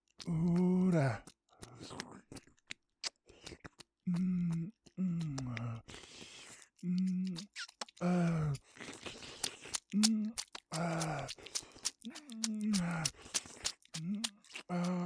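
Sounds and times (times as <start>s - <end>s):
speech: 0.2s - 2.0s
wet kissing smacks from a young lady kissing a man: 3.0s - 4.6s, 5.2s - 5.7s, 7.0s - 15.0s.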